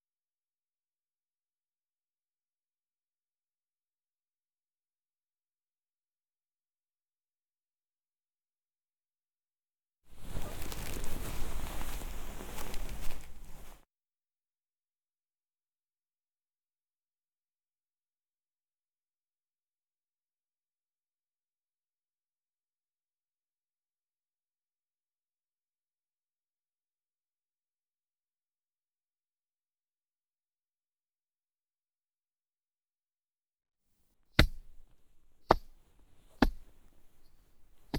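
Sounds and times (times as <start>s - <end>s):
footjob ASMR sounds: 10.2s - 13.8s, 34.4s - 37.9s.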